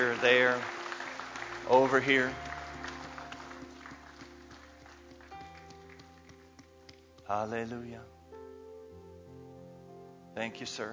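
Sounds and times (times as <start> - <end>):
speech: 0.0 - 0.8, 1.7 - 2.5, 7.3 - 8.2, 10.4 - 10.9
audience clapping along in rhythm: 0.0 - 7.5.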